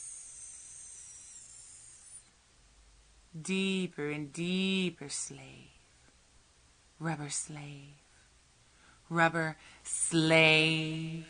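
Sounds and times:
hissing: 0.0 - 2.3
speech: 3.4 - 5.8, 7.0 - 8.0, 9.1 - 11.2.

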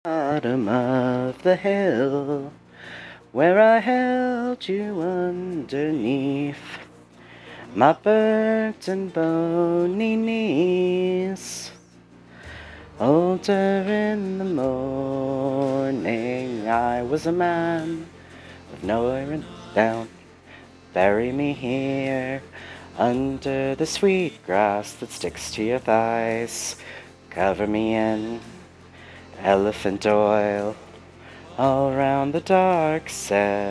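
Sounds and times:
person singing: 0.0 - 33.6.

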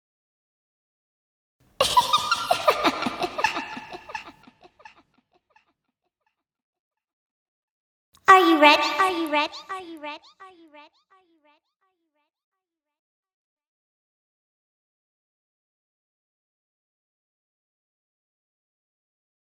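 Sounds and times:
person speaking: 1.8 - 4.3, 8.3 - 10.2
person giggling: 1.8 - 4.6.

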